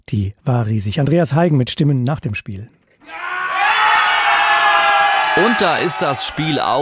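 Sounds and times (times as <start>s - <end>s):
speech: 0.1s - 3.2s, 5.4s - 6.8s
football fans cheering: 3.0s - 6.8s.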